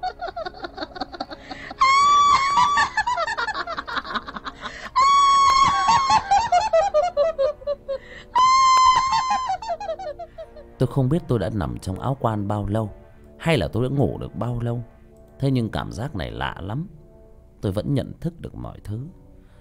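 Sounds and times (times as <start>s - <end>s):
female ghost's wild cackling laughter: 0.0s - 10.7s
female ghost screaming: 1.8s - 3.4s, 5.0s - 7.0s, 8.3s - 10.3s
speech: 11.0s - 17.0s, 17.6s - 19.2s.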